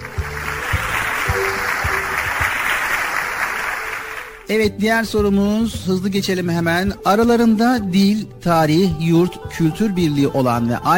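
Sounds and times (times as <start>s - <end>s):
group clapping: 0.0s - 4.5s
speech: 4.5s - 10.9s.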